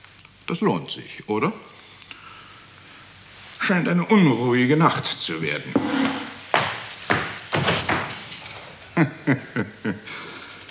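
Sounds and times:
speech: 0.5s - 1.8s, 3.7s - 6.2s, 7.8s - 8.2s, 9.0s - 10.3s
heavy knocks and bumps of a toilet door being opened: 5.8s - 8.7s
short high door hinge squeak: 7.6s - 8.8s
laughter: 8.5s - 10.6s.

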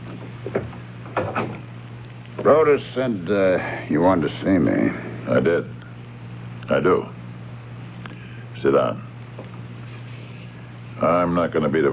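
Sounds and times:
door being closed: 0.1s - 1.7s
speech: 0.5s - 0.8s, 2.5s - 5.8s, 6.7s - 7.2s, 8.6s - 9.1s, 11.0s - 11.9s.

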